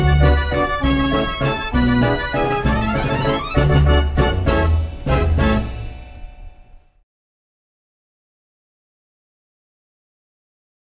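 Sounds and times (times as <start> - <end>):
Dutch street barrel organ playing: 0.0 - 6.0.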